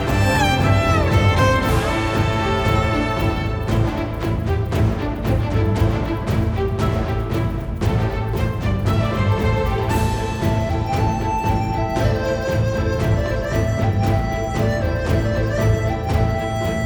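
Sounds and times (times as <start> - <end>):
battle background music: 0.0 - 16.8.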